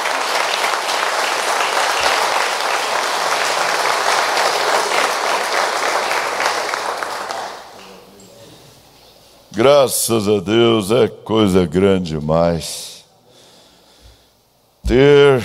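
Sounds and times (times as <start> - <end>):
room full of people clapping: 0.0 - 8.3
speech: 9.6 - 12.9, 14.9 - 15.4.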